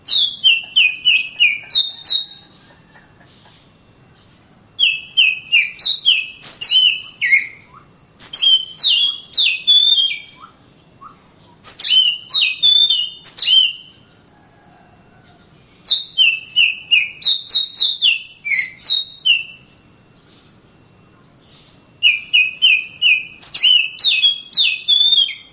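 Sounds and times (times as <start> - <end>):
Oriental magpie-robin singing clear whistled notes: 0.0 - 2.6, 4.8 - 14.0, 15.8 - 19.7, 21.4 - 25.5.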